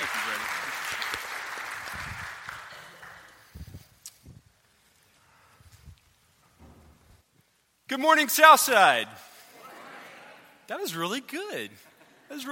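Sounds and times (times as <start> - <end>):
church congregation applauding to welcome a guest speaker: 0.0 - 3.8
speech: 7.9 - 9.3, 10.7 - 12.4.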